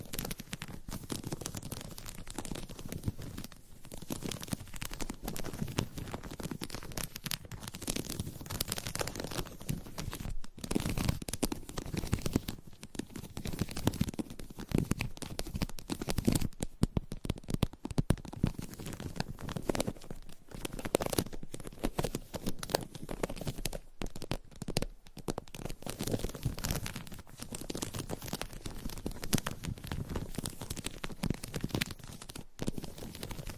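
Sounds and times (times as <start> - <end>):
ASMR scratching and tapping on a surface: 0.0 - 33.5.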